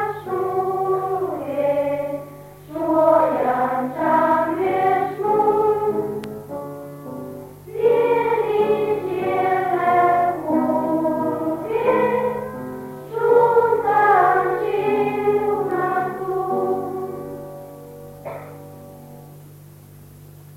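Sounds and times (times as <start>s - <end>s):
children singing a festive cantata: 0.0s - 6.1s, 7.7s - 17.5s.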